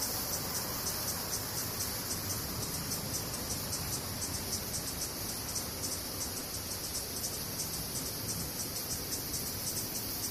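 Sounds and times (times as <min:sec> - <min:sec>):
cicadas buzzing: 0:00.0 - 0:10.3.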